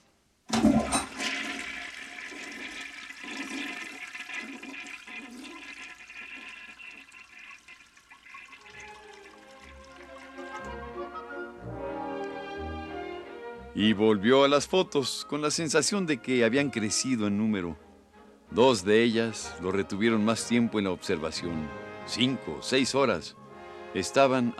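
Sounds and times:
toilet flushing: 0.5s - 10.7s
cistern refilling hiss: 1.0s - 10.4s
speech: 13.8s - 17.9s, 18.6s - 24.5s.

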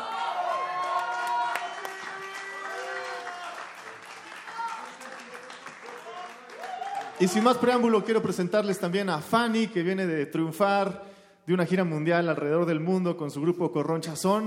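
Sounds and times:
crowd clapping: 0.0s - 8.9s
speech: 7.2s - 14.4s.

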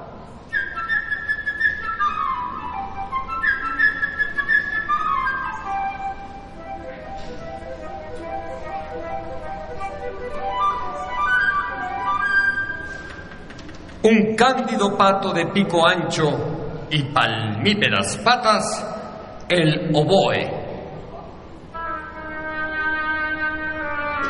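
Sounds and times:
flute playing a melody: 0.4s - 13.4s, 21.7s - 24.2s
speech: 14.0s - 18.9s, 19.5s - 20.6s.

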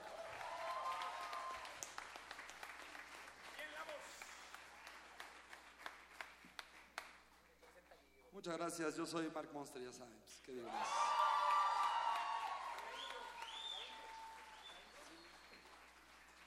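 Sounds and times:
voices cheering: 0.0s - 1.8s, 10.7s - 15.5s
audience applause: 0.0s - 7.1s, 10.7s - 16.4s
speech: 8.4s - 11.2s.

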